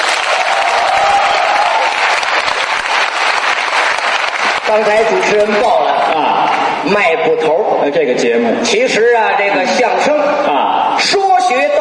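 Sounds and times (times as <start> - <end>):
audience applause: 0.0 - 5.4
speech: 4.7 - 11.7.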